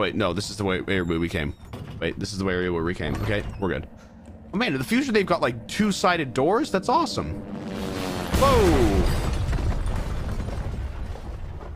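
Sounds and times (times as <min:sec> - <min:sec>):
speech: 0:00.0 - 0:09.2
video game helicopter crashing into building: 0:07.5 - 0:11.6.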